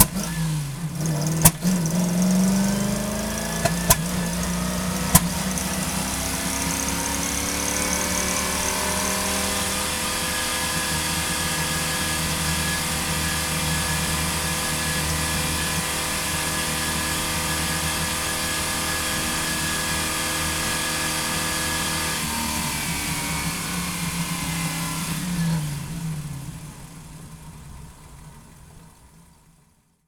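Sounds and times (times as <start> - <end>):
1971 Plymouth Cuda Hemi engine starting, idling and blipping, recorded onboard: 0.0 - 29.7.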